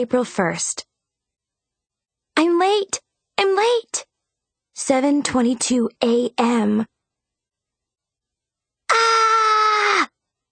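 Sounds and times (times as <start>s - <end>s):
speech: 0.0s - 0.9s, 2.4s - 4.1s, 4.8s - 6.9s, 8.9s - 9.2s
person screaming in frustration: 8.9s - 10.1s.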